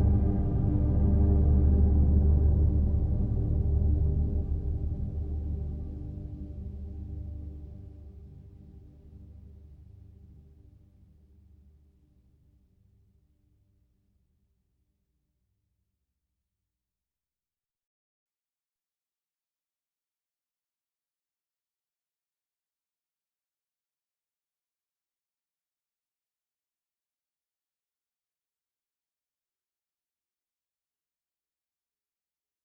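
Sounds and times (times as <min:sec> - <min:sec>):
string orchestra: 0:00.0 - 0:08.4.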